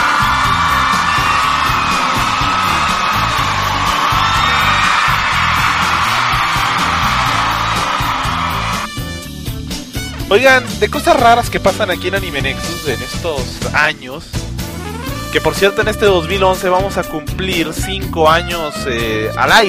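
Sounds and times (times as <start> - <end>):
crowd ovation cheering and whooping: 0.0 - 8.9
speech: 10.3 - 14.5, 15.3 - 19.6.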